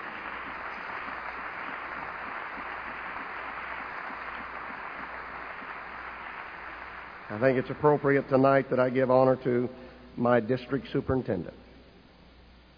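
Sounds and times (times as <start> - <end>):
audience applause: 0.0 - 8.2
speech: 7.3 - 11.6.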